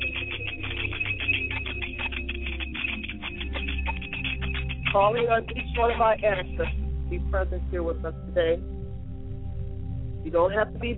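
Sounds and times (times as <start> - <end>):
bell rung to summon ancestors: 0.0 - 6.8
speech: 5.0 - 8.7, 10.2 - 10.9.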